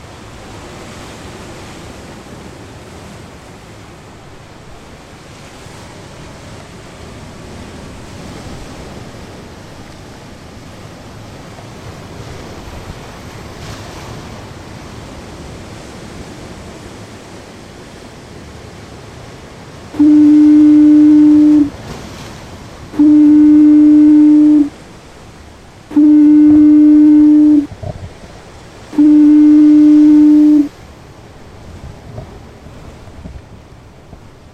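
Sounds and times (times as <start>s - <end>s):
ocean surf: 0.0s - 34.5s
wind: 0.0s - 34.5s
Fastnet Rock foghorn blasts generated in Audacity: 20.0s - 21.8s, 22.9s - 24.8s, 25.9s - 27.7s, 28.8s - 30.7s.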